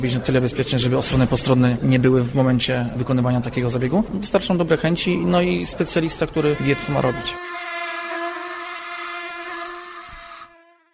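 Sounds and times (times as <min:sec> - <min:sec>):
speech: 0:00.0 - 0:07.5
mosquito buzzing: 0:07.0 - 0:10.9.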